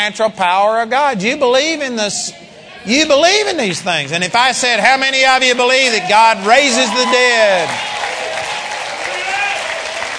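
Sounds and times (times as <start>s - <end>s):
speech: 0.0s - 7.9s
church congregation clapping: 3.5s - 10.1s.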